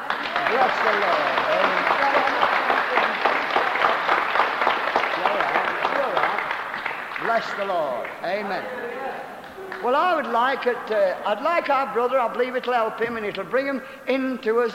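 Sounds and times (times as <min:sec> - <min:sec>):
audience clapping: 0:00.0 - 0:11.6
speech: 0:00.5 - 0:03.2, 0:07.3 - 0:14.7.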